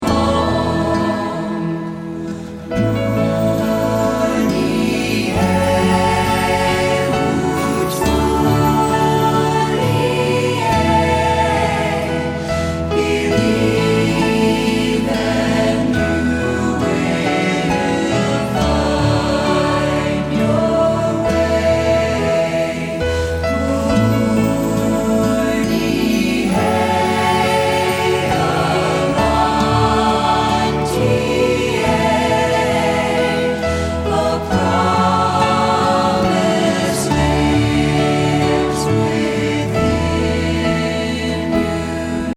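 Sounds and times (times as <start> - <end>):
musical accompaniment: 0.0 - 42.3.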